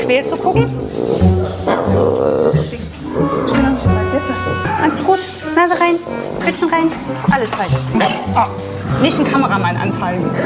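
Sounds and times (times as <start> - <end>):
speech: 0.0 - 3.3, 6.4 - 10.4
Amur leopard growling: 0.0 - 10.4.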